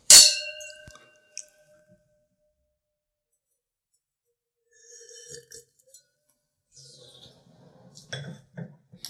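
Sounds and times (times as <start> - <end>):
wine glasses clinking in a toast: 0.1 - 1.4.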